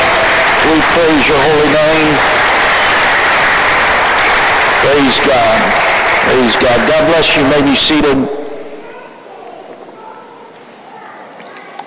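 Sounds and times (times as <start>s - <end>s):
audience clapping hands in praise: 0.0s - 8.7s
speech: 0.7s - 2.4s, 4.8s - 8.4s.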